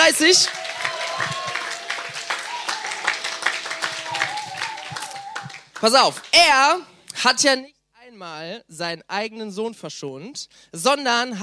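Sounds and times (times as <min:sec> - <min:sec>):
audience applause: 0:00.0 - 0:06.4
speech: 0:00.1 - 0:01.4, 0:05.8 - 0:11.4.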